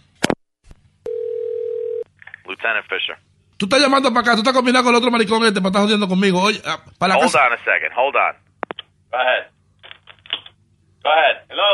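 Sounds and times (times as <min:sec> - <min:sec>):
telephone dial tone: 0:01.1 - 0:02.0
speech: 0:02.6 - 0:08.4, 0:09.1 - 0:09.6, 0:11.0 - 0:11.7.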